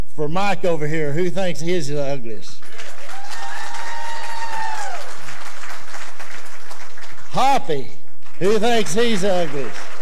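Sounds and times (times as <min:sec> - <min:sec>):
speech: 0:00.2 - 0:02.6, 0:07.4 - 0:09.9
audience applause: 0:02.6 - 0:07.3, 0:08.7 - 0:10.0
long high whoop: 0:03.0 - 0:05.2.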